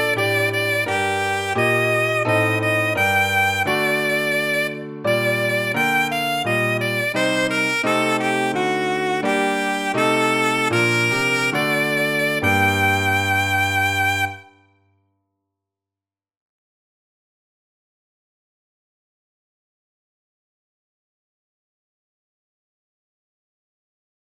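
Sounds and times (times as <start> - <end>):
alto saxophone: 0.0 - 14.6
piano: 0.0 - 14.6.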